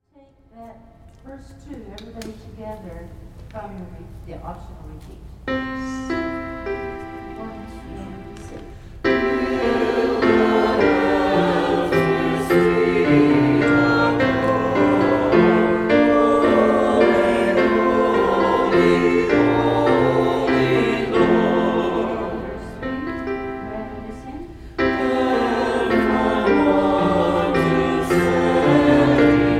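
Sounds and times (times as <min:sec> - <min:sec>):
hymn with all parts: 0:07.2 - 0:29.5.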